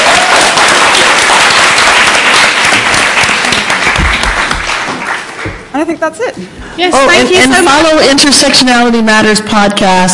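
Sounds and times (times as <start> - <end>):
audience applause: 0.0 - 5.7
speech: 5.8 - 10.1.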